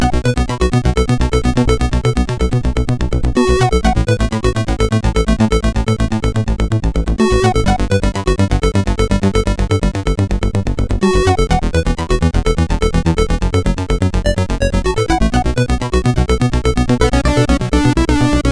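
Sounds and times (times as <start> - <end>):
MOS 6581R2 SID chip music: 0.0 - 18.4.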